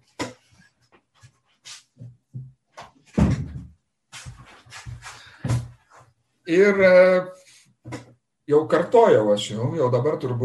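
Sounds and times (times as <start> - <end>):
softer knocks and shuffling bumps: 3.1 - 6.0
auditorium door being closed: 3.2 - 3.7
speech: 6.5 - 7.4, 8.5 - 10.4.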